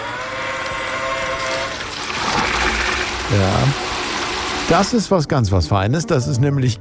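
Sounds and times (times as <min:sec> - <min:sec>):
garden watering robot Gießbert at work: 0:00.0 - 0:05.2
speech: 0:03.3 - 0:03.9, 0:04.7 - 0:06.7.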